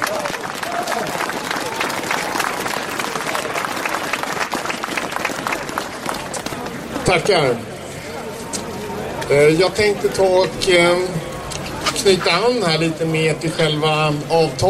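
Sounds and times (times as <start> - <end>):
outdoor crowd applauding: 0.0 - 7.0
speech: 7.1 - 7.7, 9.3 - 11.2, 12.0 - 14.6.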